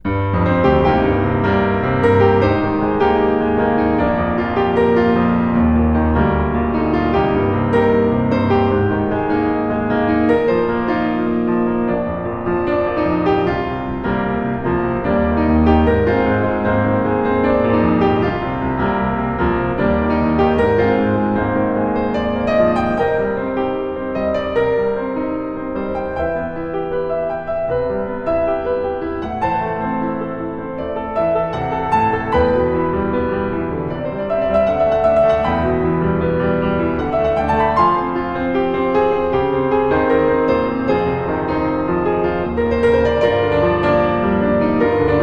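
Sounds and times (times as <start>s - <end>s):
piano: 0.0s - 45.2s.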